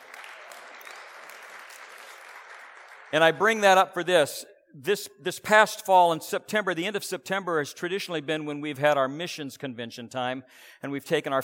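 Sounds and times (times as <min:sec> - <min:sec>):
audience applause: 0:00.0 - 0:03.5
speech: 0:03.1 - 0:11.4.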